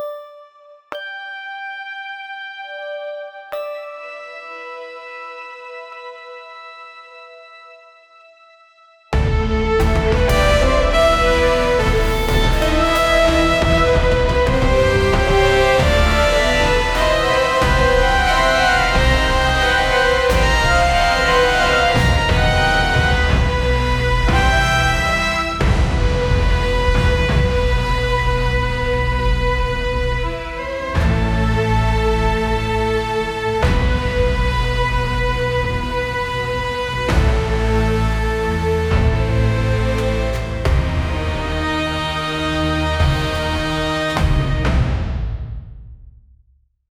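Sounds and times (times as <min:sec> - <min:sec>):
epic cinematic music buildup: 0:09.2 - 0:45.8.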